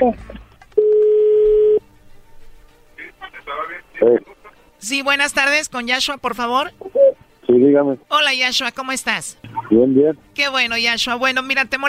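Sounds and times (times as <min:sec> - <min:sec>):
speech: 0:00.0 - 0:00.4, 0:04.0 - 0:06.8, 0:07.5 - 0:11.8
telephone ringback tone while dialing: 0:00.8 - 0:01.8.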